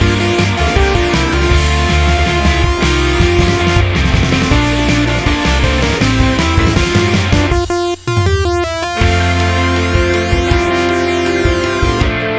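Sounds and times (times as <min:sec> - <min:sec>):
long synth key melody: 0:00.0 - 0:12.2.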